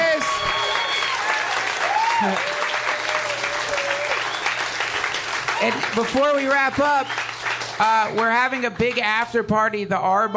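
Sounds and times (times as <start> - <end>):
audience round of applause: 0.0 - 9.3
speech: 2.2 - 2.5, 5.6 - 7.2, 7.8 - 10.3.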